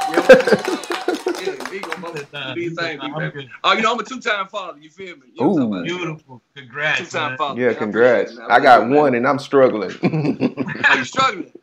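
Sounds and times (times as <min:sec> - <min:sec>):
cheering voices: 0:00.0 - 0:01.9
audience applause: 0:00.0 - 0:02.5
laughter: 0:00.0 - 0:03.7, 0:09.8 - 0:11.6
speech: 0:00.3 - 0:00.8, 0:01.8 - 0:11.6.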